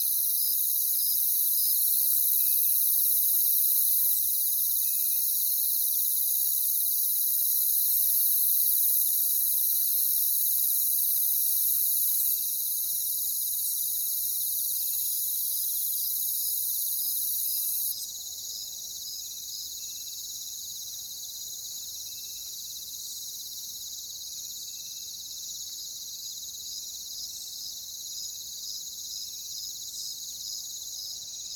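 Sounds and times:
crickets chirping: 0.0s - 31.5s.

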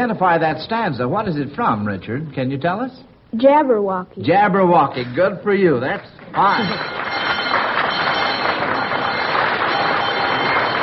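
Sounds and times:
speech: 0.0s - 7.0s
quiz show bell ringing: 6.4s - 10.8s.

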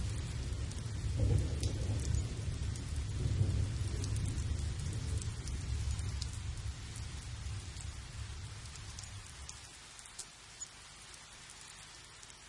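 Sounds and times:
thunderstorm in a field: 0.0s - 9.1s.

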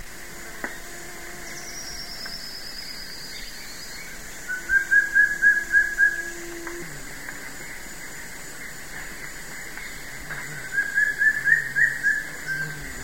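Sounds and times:
wing-barred piprites calls: 1.5s - 13.0s.

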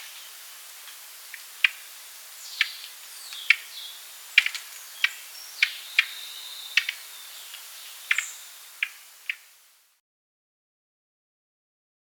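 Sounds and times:
Gray-breasted wood-wren singing in Ecuador: 0.0s - 9.6s.

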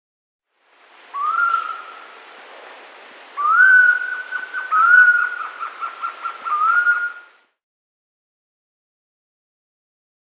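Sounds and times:
Screaming Piha Lipaugus vociferans calling in South America: 1.1s - 2.2s, 3.4s - 7.3s.

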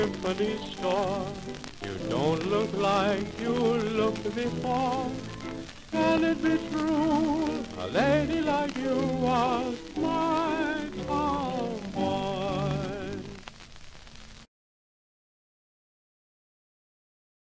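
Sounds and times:
jazz orchestra with vocals from 1931: 0.0s - 13.4s.

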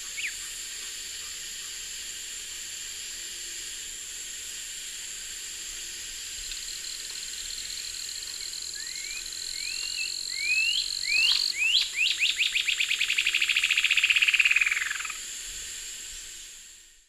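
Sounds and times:
Thamnomanes caesius song in the Eastern Lowlands of South America: 0.0s - 0.6s, 8.4s - 15.2s.

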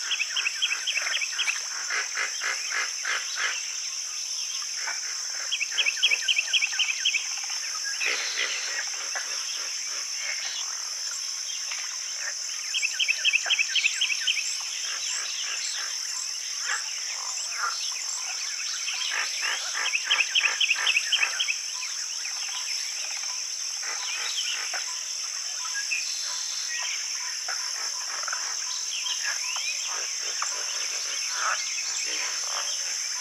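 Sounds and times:
frogs: 0.0s - 33.1s.

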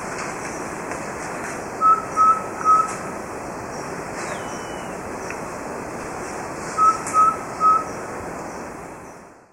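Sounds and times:
background hiss: 0.0s - 9.5s
subtropical pygmy owl hooting: 1.8s - 3.0s, 4.3s - 5.0s, 6.8s - 8.0s.

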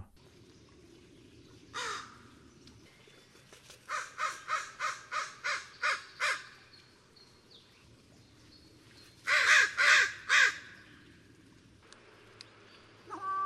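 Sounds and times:
American crow cawing: 1.8s - 2.2s, 3.9s - 6.6s, 9.3s - 10.8s, 13.1s - 13.4s.

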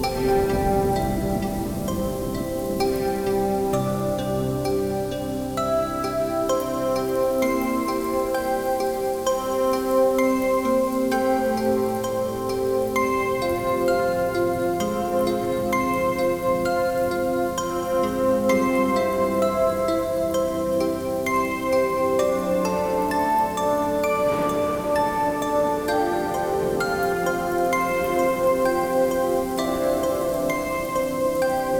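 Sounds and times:
thunderstorm: 0.0s - 4.6s, 24.0s - 28.3s
gentle droplets: 0.0s - 31.7s.

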